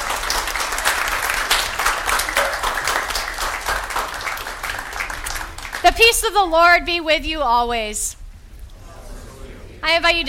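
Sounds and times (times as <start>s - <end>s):
audience applauding: 0.0s - 6.3s
speech: 6.0s - 8.2s, 9.8s - 10.2s.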